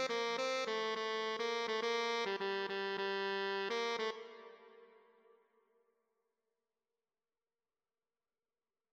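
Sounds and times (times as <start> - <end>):
tenor saxophone: 0.0 - 5.0.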